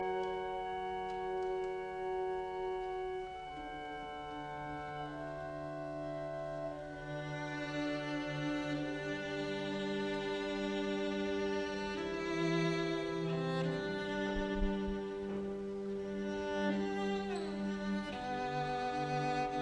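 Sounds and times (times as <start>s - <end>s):
cello concerto slow movement: 0.0s - 19.5s.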